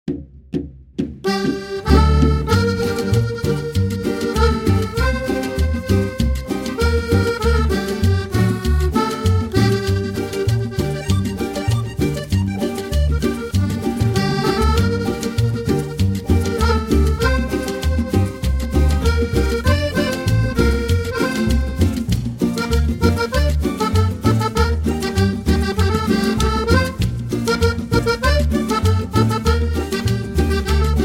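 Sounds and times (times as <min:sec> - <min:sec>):
cumbia music: 0:00.6 - 0:31.0.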